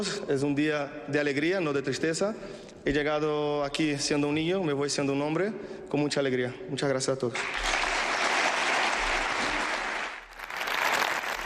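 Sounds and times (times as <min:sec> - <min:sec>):
speech: 0:00.0 - 0:07.7
ovation applause from audience: 0:07.4 - 0:11.4.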